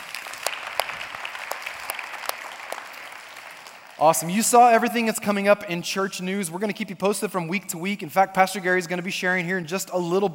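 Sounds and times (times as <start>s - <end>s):
church congregation applauding to welcome guests at a morning service: 0.0s - 4.3s
speech: 4.0s - 10.3s.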